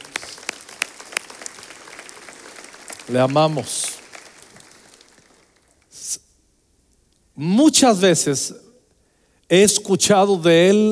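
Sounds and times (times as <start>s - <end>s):
applause: 0.0s - 5.8s
speech: 3.1s - 3.8s, 7.4s - 8.6s, 9.5s - 10.9s.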